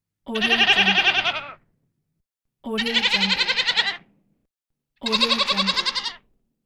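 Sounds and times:
goat bleating: 0.4 - 1.6, 2.8 - 4.0, 5.0 - 6.2.

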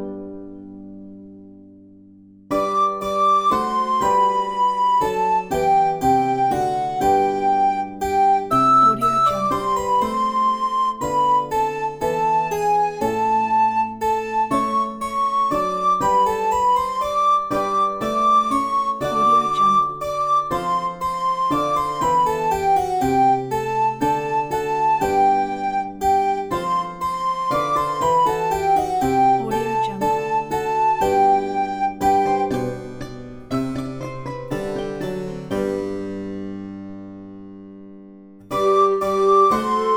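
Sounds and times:
medieval song: 2.5 - 36.9, 38.5 - 39.9.

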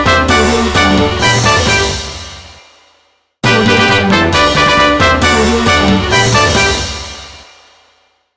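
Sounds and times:
fanfare: 0.0 - 2.4, 3.4 - 7.2.

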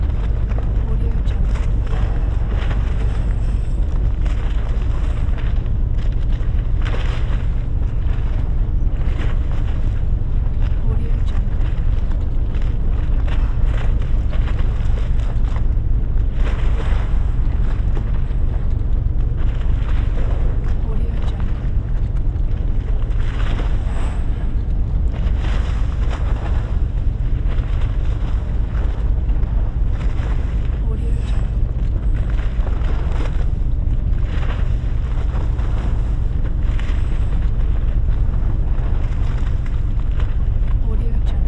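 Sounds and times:
large ship engine idling: 0.0 - 41.4
water splashing: 0.0 - 41.4.

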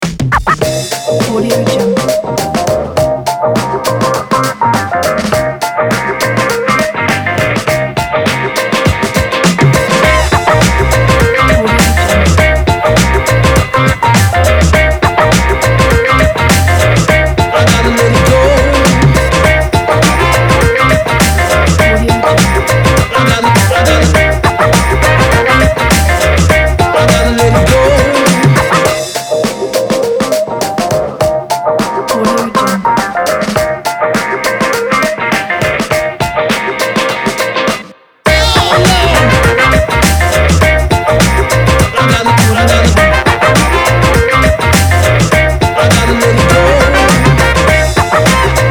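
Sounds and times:
upbeat funky beats: 0.0 - 48.6.

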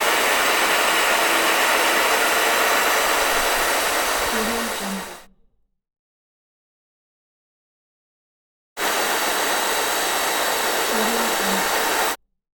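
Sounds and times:
steam hissing: 0.0 - 5.3, 8.8 - 12.2.

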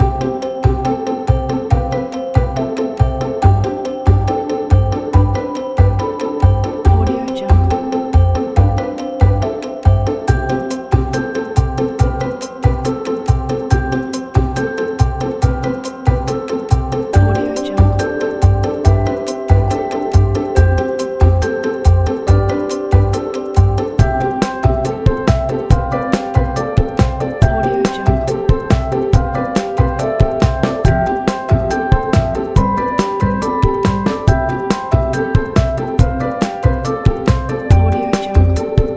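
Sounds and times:
quirky casual background music: 0.0 - 38.9.

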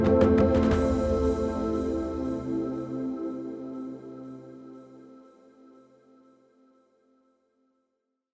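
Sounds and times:
ethnic inspirational music: 0.0 - 6.5.

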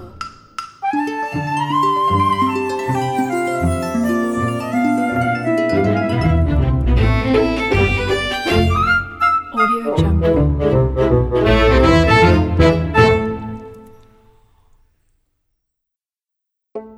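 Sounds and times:
eccentric orchestra playing: 0.9 - 13.9.

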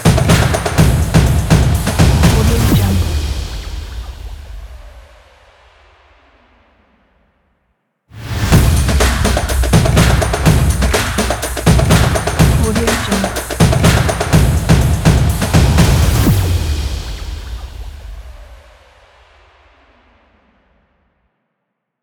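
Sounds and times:
upbeat sport fashion technology percussion music: 0.0 - 4.4, 8.3 - 18.4.

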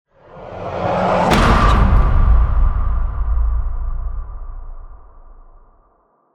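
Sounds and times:
screamy stinger: 0.4 - 5.4.

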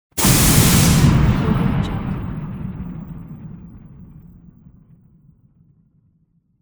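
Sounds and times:
steam release: 0.1 - 2.5.

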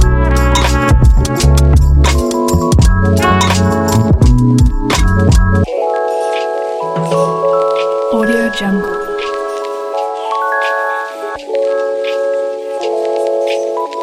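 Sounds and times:
autumn lofi beat: 0.0 - 14.0.

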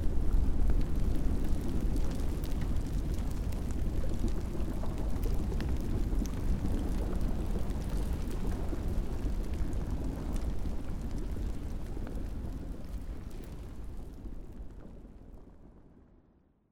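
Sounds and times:
volcano lava ambience: 0.0 - 16.2.

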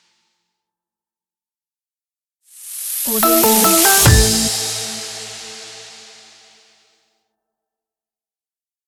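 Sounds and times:
modern podcast vlog music: 3.1 - 5.8.

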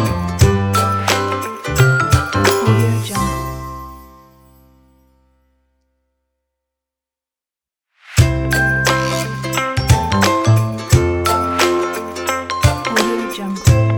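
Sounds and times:
happy ukulele guitar music: 0.0 - 4.2, 8.2 - 13.9.

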